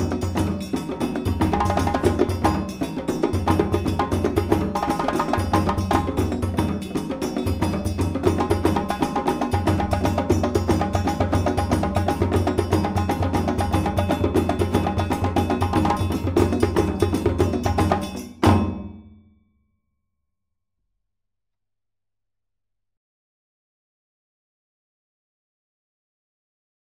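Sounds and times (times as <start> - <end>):
djembe: 0.0 - 19.1.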